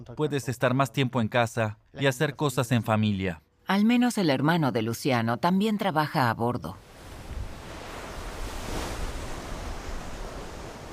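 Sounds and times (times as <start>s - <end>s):
speech: 0.0s - 6.9s
waves at sea heard from aboard a fishing boat: 6.8s - 10.9s
wind at sea heard from aboard a fishing boat: 6.8s - 10.9s.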